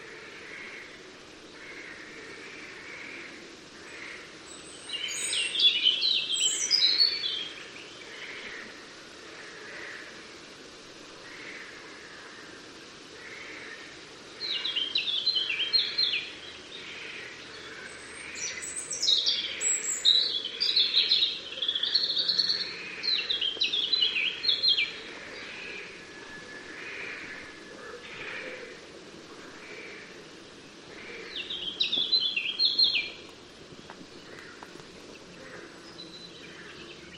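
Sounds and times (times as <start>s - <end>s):
hiss: 0.0s - 37.1s
European robin singing: 4.4s - 8.0s, 14.4s - 30.1s, 30.8s - 37.1s.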